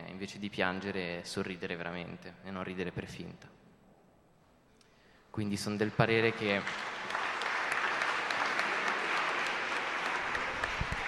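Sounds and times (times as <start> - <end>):
speech: 0.2 - 3.6, 5.4 - 7.0
audience applause: 6.2 - 11.0.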